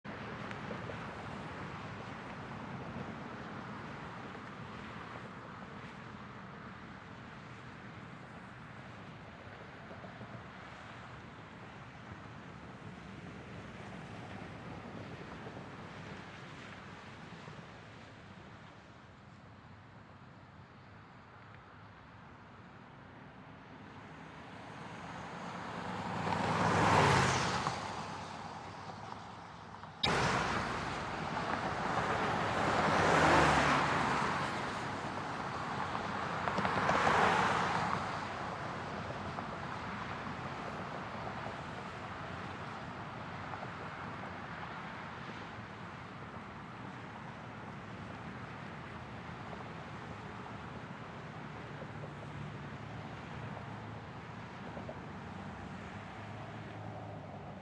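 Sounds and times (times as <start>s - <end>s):
traffic: 0.0s - 57.6s.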